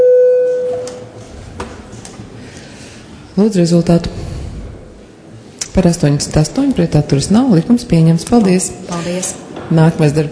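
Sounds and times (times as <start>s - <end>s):
parliamentary voting bell electronic tone: 0.0s - 1.0s
speech: 3.4s - 4.2s, 5.8s - 10.3s.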